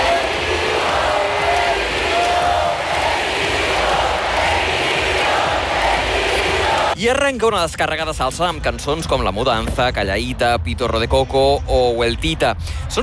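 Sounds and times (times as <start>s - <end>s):
concert crowd screaming and cheering wildly: 0.0s - 7.0s
speech: 7.0s - 13.0s.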